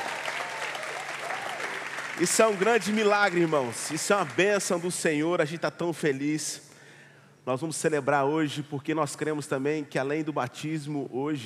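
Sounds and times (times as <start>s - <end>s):
audience applauding: 0.0s - 5.0s
speech: 2.2s - 6.7s, 7.4s - 11.4s.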